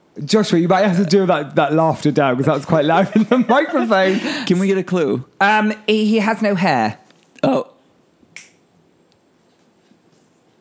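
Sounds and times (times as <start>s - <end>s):
low steady hum: 0.0s - 10.5s
speech: 0.2s - 7.6s
laughter: 2.8s - 4.7s
finger snap: 8.3s - 9.2s.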